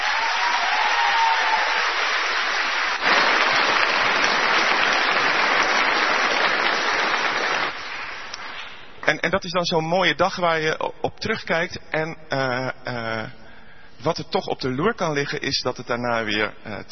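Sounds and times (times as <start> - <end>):
audience clapping: 0.0 - 9.2
speech: 9.2 - 13.4, 14.0 - 16.9.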